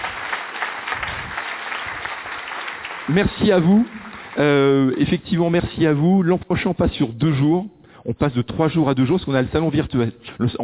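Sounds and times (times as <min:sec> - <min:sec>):
audience applause: 0:00.0 - 0:04.8
speech: 0:03.1 - 0:10.6.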